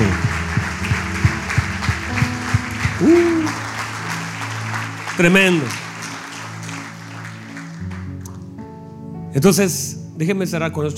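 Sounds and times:
audience applauding loudly: 0.0 - 8.6
speech: 3.0 - 3.6, 5.2 - 5.8, 9.4 - 10.9.

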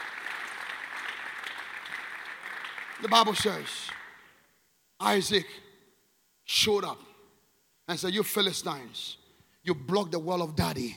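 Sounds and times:
crowd applauding: 0.0 - 4.4
speech: 3.0 - 4.0, 5.0 - 5.6, 6.5 - 7.1, 7.9 - 10.9.

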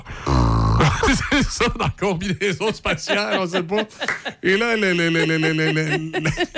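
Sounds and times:
mouth imitation of fart in spacesuit: 0.3 - 1.0
laughter: 0.8 - 6.5
speech: 1.1 - 6.5.

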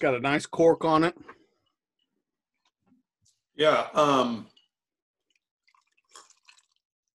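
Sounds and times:
speech: 0.0 - 1.4, 3.6 - 4.5
whiskey poured into a glass: 4.5 - 7.1.

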